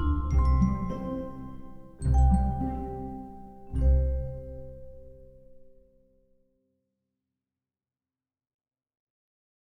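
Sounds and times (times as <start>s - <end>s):
children's orchestra playing a main theme: 0.0s - 4.4s.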